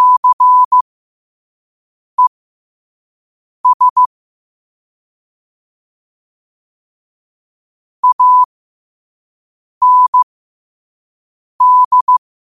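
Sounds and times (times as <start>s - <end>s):
morse code at 5 wpm: 0.0s - 0.8s, 3.7s - 4.1s, 8.0s - 8.5s, 9.8s - 10.3s, 11.6s - 12.2s.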